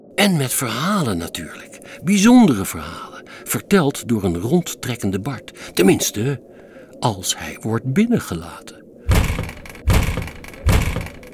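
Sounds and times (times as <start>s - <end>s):
speech: 0.2s - 8.8s
heavy booming banging on a door: 9.1s - 11.3s.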